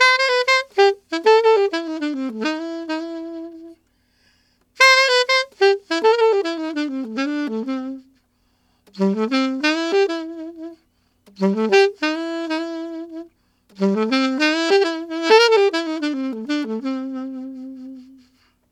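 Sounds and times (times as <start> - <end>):
alto saxophone playing RnB in C major: 0.0 - 18.7.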